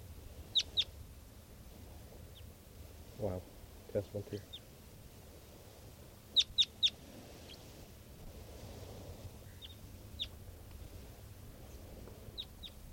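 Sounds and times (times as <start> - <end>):
adult male bird calling: 0.4 - 1.0, 6.3 - 7.7, 9.4 - 10.4, 11.6 - 12.9
speech: 3.2 - 4.6.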